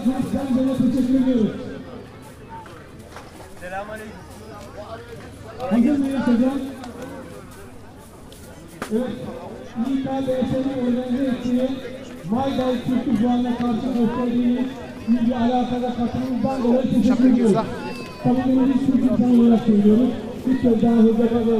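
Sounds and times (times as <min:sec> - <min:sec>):
Turkish funfair in Düsseldorf Oberbilk: 0:00.0 - 0:21.5.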